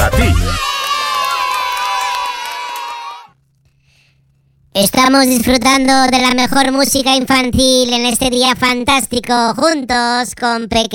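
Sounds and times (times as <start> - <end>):
children cheering and whooping at a children's music show: 0.1 - 3.4
speech: 4.8 - 10.9.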